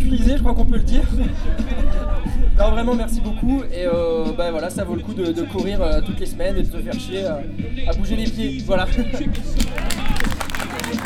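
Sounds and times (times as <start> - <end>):
speech: 0.1 - 9.8
murmur of voices and cheering: 0.9 - 4.3, 8.2 - 11.0
laughter: 1.0 - 2.4, 9.4 - 11.0
crowd applause: 9.4 - 11.0.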